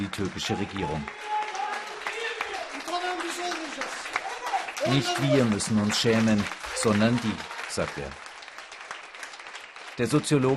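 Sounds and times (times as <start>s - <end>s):
crowd applauding a lecturer: 0.0s - 10.5s
speech: 0.1s - 1.4s, 3.2s - 4.2s, 4.8s - 8.2s, 10.0s - 10.5s.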